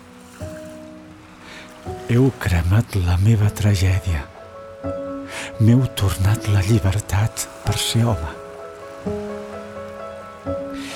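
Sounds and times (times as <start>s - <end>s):
calm sea murmuring: 0.0s - 10.9s
speech: 2.1s - 5.0s, 5.6s - 8.4s, 9.0s - 9.2s.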